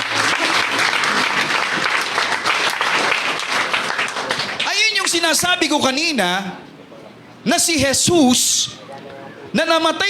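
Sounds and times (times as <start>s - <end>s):
congregation clapping hands in a church worship service: 0.0s - 5.2s
speech: 5.3s - 6.6s, 7.4s - 8.8s, 9.5s - 10.0s.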